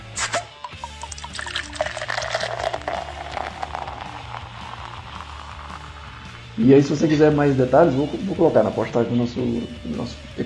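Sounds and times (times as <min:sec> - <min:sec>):
Collective Arts Brewing beer opened and poured: 0:00.2 - 0:06.6
speech: 0:06.6 - 0:10.4.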